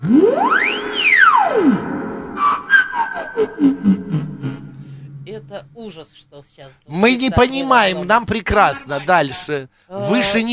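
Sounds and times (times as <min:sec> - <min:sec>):
theremin tone gliding in pitch: 0:00.0 - 0:05.8
speech: 0:05.6 - 0:10.5.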